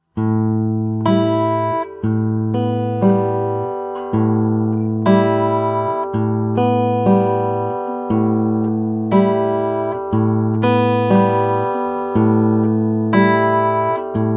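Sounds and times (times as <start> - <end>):
fingerstyle acoustic guitar: 0.0 - 14.3.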